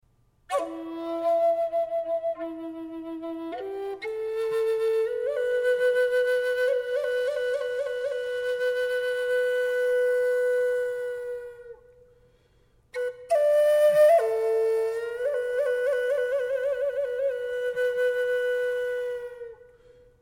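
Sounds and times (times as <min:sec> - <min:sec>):
Native American flute playing: 0:00.5 - 0:12.0, 0:12.9 - 0:20.0.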